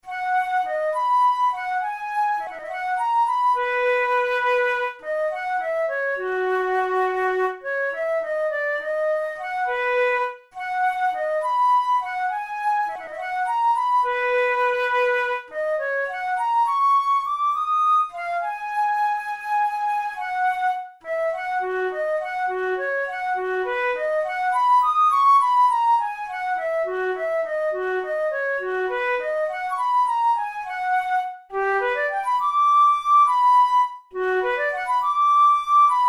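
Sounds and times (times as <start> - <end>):
studies for the Boehm flute: 0.0 - 36.0.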